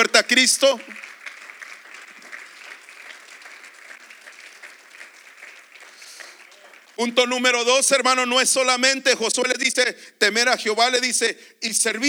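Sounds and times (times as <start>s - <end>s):
speech: 0.0s - 1.1s, 7.0s - 12.0s
applause: 0.0s - 8.0s.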